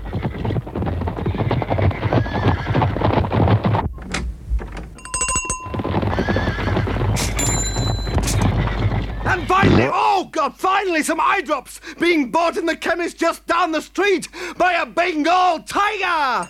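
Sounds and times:
herd of zebras whinnying: 0:00.0 - 0:03.6, 0:05.7 - 0:09.9
zebra hooves: 0:00.0 - 0:09.9
speech: 0:10.4 - 0:16.4.

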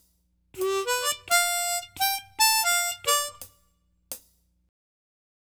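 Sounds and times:
blues harmonica: 0:00.6 - 0:03.5.

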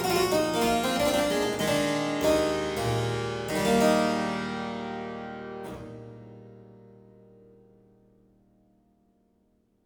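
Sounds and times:
harpsichord courante in E minor: 0:00.0 - 0:06.6.

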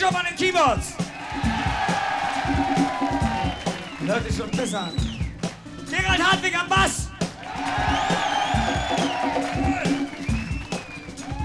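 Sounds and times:
speech: 0:00.0 - 0:02.0, 0:04.1 - 0:05.1, 0:05.9 - 0:07.0
loud concert crowd cheering: 0:00.8 - 0:11.4
shouts and whoops from crowd: 0:01.0 - 0:04.0, 0:07.4 - 0:11.4.

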